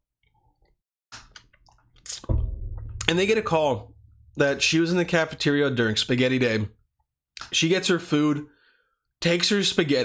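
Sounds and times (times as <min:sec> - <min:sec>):
sipping water: 0:01.6 - 0:02.3
speech: 0:03.1 - 0:06.8, 0:07.4 - 0:08.6, 0:09.2 - 0:10.0.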